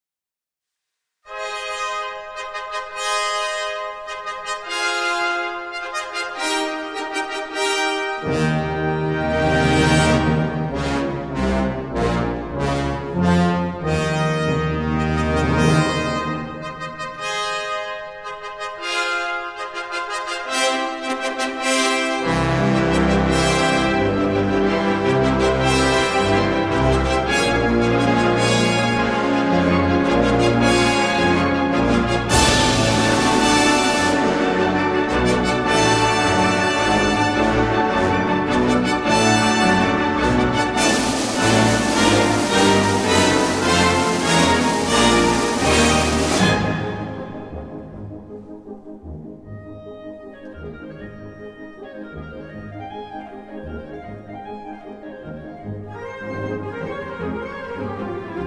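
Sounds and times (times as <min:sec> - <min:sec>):
festive orchestral overture: 0:01.3 - 0:58.4.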